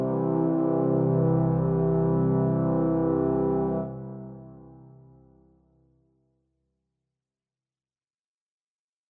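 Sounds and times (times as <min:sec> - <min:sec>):
brass: 0:00.0 - 0:05.5.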